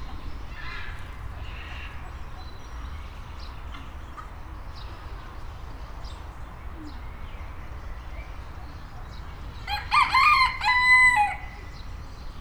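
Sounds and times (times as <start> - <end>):
rooster: 9.6 - 11.8.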